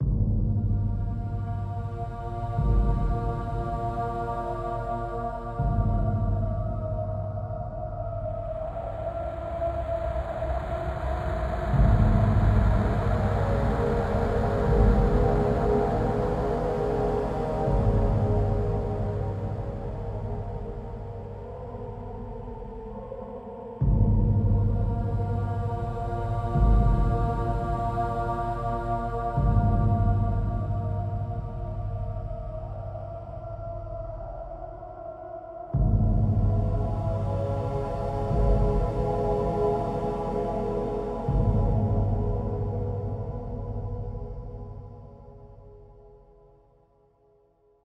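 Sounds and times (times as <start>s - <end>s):
ambience: 0.0s - 46.6s.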